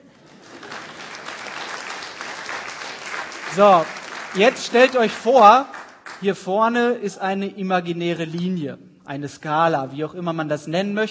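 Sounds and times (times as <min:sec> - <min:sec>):
audience applause: 0:00.0 - 0:06.3
speech: 0:03.5 - 0:11.0.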